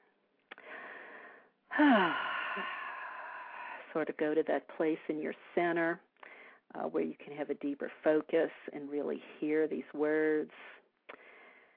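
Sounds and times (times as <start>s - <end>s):
soft voiced sigh: 0.5s - 3.8s
person taking a deep breath: 0.6s - 3.9s, 11.1s - 11.7s
speech: 1.8s - 2.8s, 3.9s - 6.1s, 6.7s - 11.2s.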